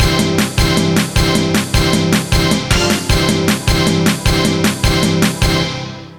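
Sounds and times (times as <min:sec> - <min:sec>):
jingle: 0:00.0 - 0:06.1.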